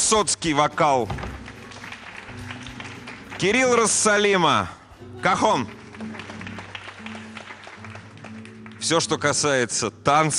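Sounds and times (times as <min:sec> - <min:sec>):
speech: 0:00.1 - 0:01.3, 0:03.4 - 0:06.1, 0:08.9 - 0:10.3
audience applause: 0:01.3 - 0:04.3, 0:05.2 - 0:09.0.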